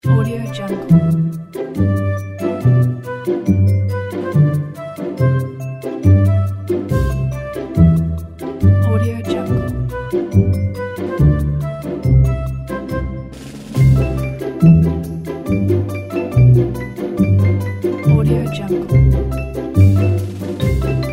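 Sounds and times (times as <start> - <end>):
cheerful kids music: 0.0 - 21.1.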